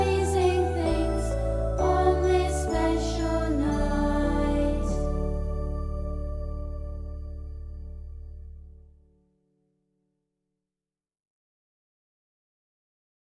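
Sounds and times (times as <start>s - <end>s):
choir singing: 0.0s - 6.4s.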